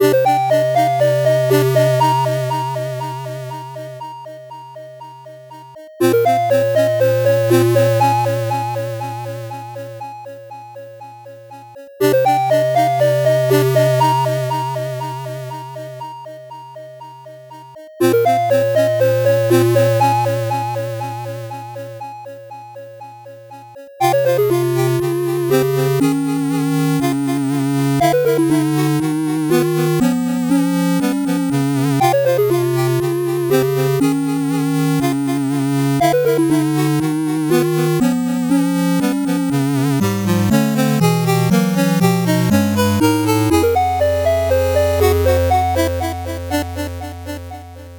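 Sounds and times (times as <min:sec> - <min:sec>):
fast 8-bit background music: 0:00.0 - 0:03.5, 0:06.0 - 0:09.6, 0:12.0 - 0:15.6, 0:18.0 - 0:21.5, 0:24.0 - 0:47.9.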